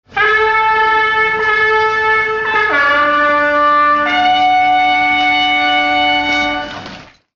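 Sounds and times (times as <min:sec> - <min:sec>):
imperial fanfare: 0:00.1 - 0:06.9.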